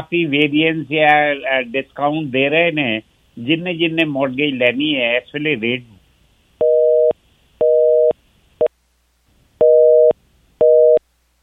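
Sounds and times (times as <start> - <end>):
speech: 0.0 - 6.0
telephone busy tone after a caller's line dropped: 6.6 - 8.2, 9.6 - 11.0.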